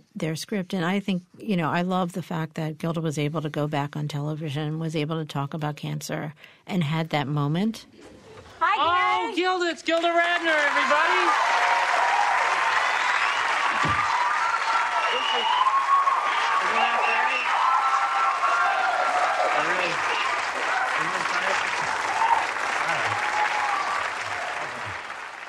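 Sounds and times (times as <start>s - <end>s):
speech: 0.2s - 8.2s, 8.8s - 11.6s
people calling out and cheering: 8.8s - 25.4s
audience applause: 9.8s - 25.4s.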